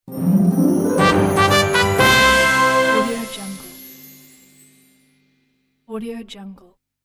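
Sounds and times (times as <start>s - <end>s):
winning jingle: 0.0s - 5.0s.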